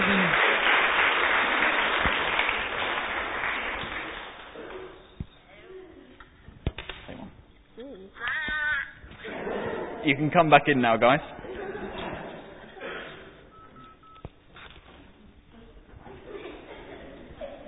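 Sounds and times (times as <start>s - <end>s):
round of applause: 0.0s - 4.6s
laughter: 8.4s - 13.5s, 16.0s - 17.6s
speech: 10.0s - 11.4s.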